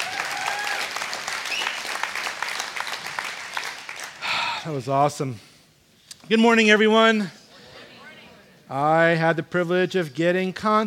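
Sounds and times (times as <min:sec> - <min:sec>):
audience applause: 0:00.0 - 0:04.6
speech: 0:04.6 - 0:05.5, 0:06.3 - 0:07.4, 0:08.7 - 0:10.8.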